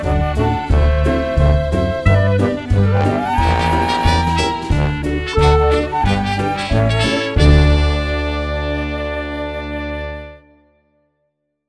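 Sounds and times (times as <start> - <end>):
karaoke backing track: 0.0 - 8.7.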